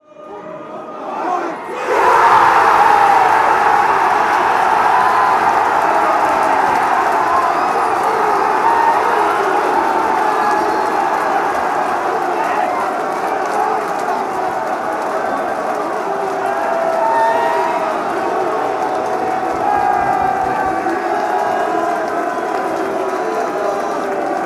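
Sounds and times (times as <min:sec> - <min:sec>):
fans chanting: 0:00.4 - 0:24.4.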